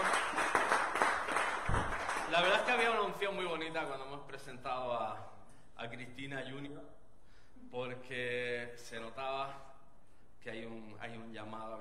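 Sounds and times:
audience applause: 0.0s - 3.0s
speech: 2.4s - 7.0s, 7.6s - 9.7s, 10.4s - 11.7s.

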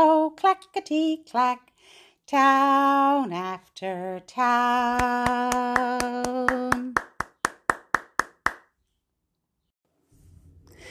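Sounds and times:
speech: 0.4s - 7.1s
hands clapping: 4.9s - 8.7s.

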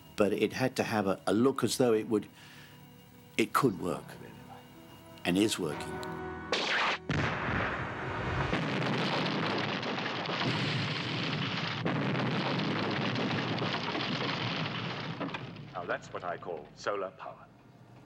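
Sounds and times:
speech: 0.2s - 2.6s, 3.4s - 4.4s, 5.2s - 6.3s, 15.8s - 17.5s
film explosion of plane hit by laser: 6.5s - 16.1s.

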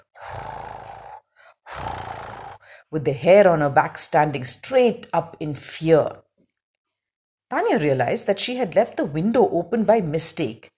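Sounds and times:
animal growling softly: 0.0s - 2.6s
speech: 2.9s - 6.2s, 7.5s - 10.7s.

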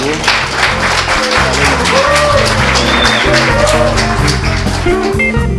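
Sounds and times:
audience applause: 0.0s - 5.4s
whistles: 2.8s - 3.4s.

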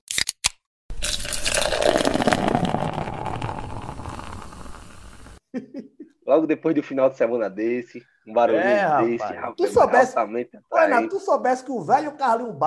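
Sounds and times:
fizzing drink pouring into a glass: 0.9s - 5.4s
speech: 5.6s - 12.6s.

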